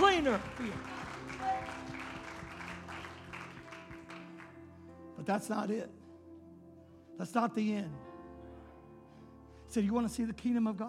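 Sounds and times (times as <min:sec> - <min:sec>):
audience hand clapping: 0:00.0 - 0:04.7
speech: 0:00.2 - 0:02.0, 0:05.2 - 0:06.0, 0:07.2 - 0:08.1, 0:09.7 - 0:10.8.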